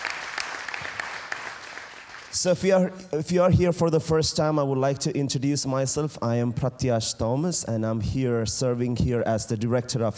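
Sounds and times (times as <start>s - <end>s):
crowd clapping: 0.0s - 2.5s
speech: 2.3s - 10.1s.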